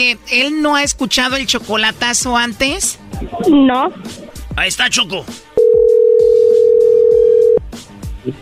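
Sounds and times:
speech: 0:00.0 - 0:05.5
telephone dial tone: 0:05.6 - 0:07.6.

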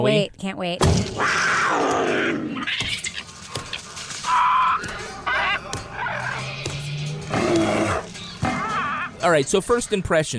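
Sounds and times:
speech: 0:00.0 - 0:03.1, 0:09.2 - 0:10.3
screaming animals in a warehouse: 0:01.1 - 0:03.3, 0:04.2 - 0:09.4.

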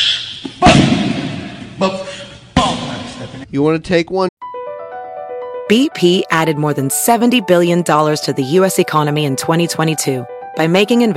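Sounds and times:
kicks landing thrown by a 50-year-old man: 0:00.6 - 0:01.6
speech: 0:03.5 - 0:04.3, 0:05.7 - 0:11.1.

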